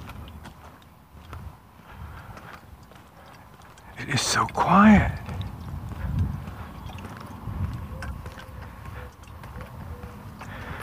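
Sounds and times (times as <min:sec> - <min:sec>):
speech: 0:04.1 - 0:05.3
dove cooing: 0:07.8 - 0:10.8.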